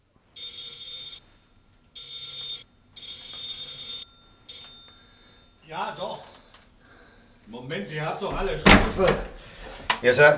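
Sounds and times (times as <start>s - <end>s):
doorbell ringing, long and short rings: 0.4s - 1.2s, 2.0s - 6.4s
speech: 5.7s - 6.1s, 7.5s - 10.3s.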